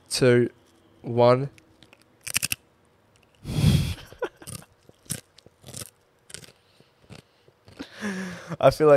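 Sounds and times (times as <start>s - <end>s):
speech: 0.1s - 1.6s, 8.6s - 8.9s
chips being bitten and chewed: 4.4s - 7.8s.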